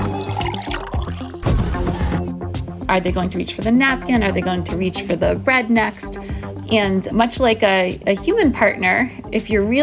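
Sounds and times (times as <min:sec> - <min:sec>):
juice being poured: 0:00.1 - 0:01.5
speech: 0:02.9 - 0:09.8.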